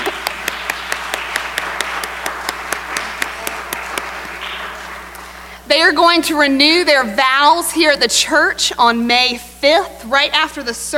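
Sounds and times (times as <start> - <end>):
church congregation applause for a 50th wedding anniversary: 0.0 - 5.5
speech: 5.7 - 10.9.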